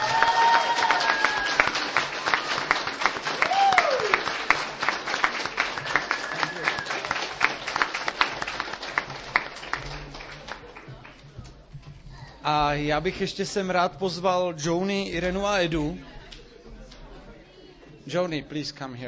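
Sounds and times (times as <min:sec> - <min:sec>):
audience clapping for the team: 0:00.0 - 0:11.5
speech: 0:12.8 - 0:16.1, 0:18.1 - 0:19.0.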